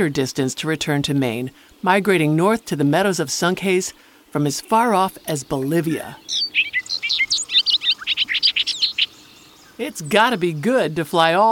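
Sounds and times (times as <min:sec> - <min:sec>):
speech: 0:00.0 - 0:06.8, 0:09.8 - 0:11.5
bobolink singing: 0:00.0 - 0:11.5.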